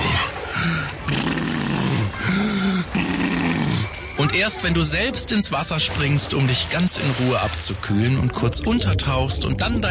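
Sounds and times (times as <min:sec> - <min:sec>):
voice imitating walrus-like heavy breathing of swimmer: 0:00.4 - 0:03.9
speech: 0:04.2 - 0:09.9.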